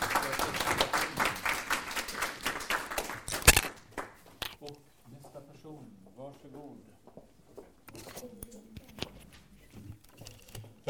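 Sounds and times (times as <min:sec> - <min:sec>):
small group light clapping for a presenter at a meeting: 0:00.0 - 0:04.4.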